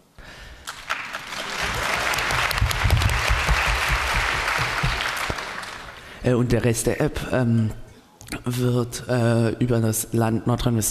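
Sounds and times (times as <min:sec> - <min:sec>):
audience applause: 0:00.6 - 0:06.2
speech: 0:06.3 - 0:07.8, 0:08.4 - 0:10.8.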